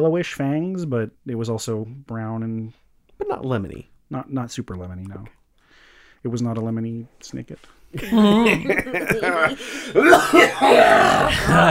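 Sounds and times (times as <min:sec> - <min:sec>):
speech: 0:00.0 - 0:05.4, 0:06.2 - 0:11.7
voiced chuckling sounds: 0:08.0 - 0:10.7
harsh throaty cough: 0:08.0 - 0:11.7.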